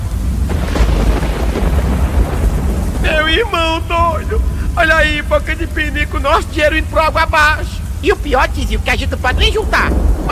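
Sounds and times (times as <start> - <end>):
heavy rain downpour: 0.0 - 10.3
speech: 3.4 - 10.3.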